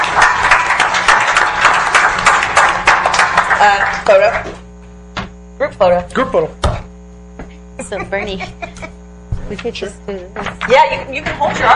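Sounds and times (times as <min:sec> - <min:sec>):
crowd applause: 0:00.0 - 0:04.6
speech: 0:03.6 - 0:04.6, 0:05.6 - 0:06.6, 0:07.8 - 0:11.7
laughter: 0:07.8 - 0:09.1.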